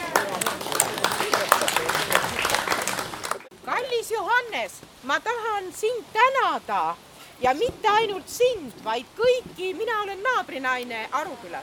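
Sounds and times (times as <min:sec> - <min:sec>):
audience applause: 0:00.0 - 0:03.5
speech: 0:04.4 - 0:11.6.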